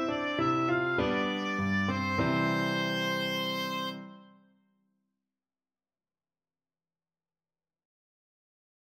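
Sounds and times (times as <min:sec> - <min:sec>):
oboe: 0:00.0 - 0:04.4.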